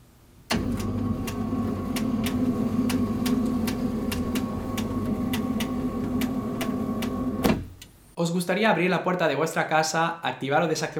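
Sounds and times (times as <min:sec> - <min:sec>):
motorized window blind opening: 0:00.5 - 0:07.4
speech: 0:08.2 - 0:10.9.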